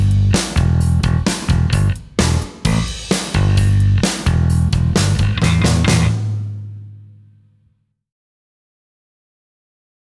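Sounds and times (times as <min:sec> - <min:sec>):
rhythm guitar: 0:00.0 - 0:07.4.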